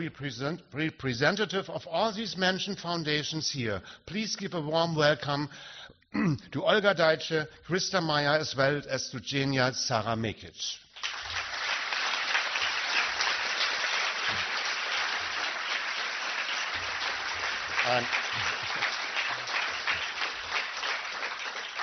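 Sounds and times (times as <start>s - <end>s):
speech: 0.0s - 11.2s, 17.9s - 18.5s
audience applause: 11.0s - 21.8s.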